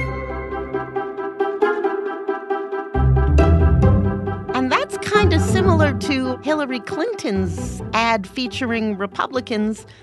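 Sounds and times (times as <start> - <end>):
bouncy instrumental stock library music: 0.0 - 10.0
low bass: 3.0 - 6.4
speech: 5.2 - 10.0.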